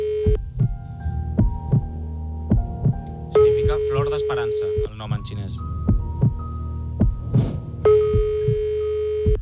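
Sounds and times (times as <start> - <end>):
low rhythmic throbbing thump: 0.0 - 9.4
speech: 3.7 - 5.7
ringback tone of an unanswered telephone call: 7.9 - 9.3.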